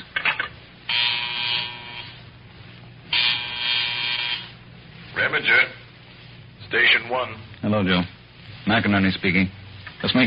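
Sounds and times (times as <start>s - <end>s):
phone buzzer: 0.9s - 2.2s, 3.1s - 4.6s
speech: 5.3s - 5.8s, 6.7s - 10.2s.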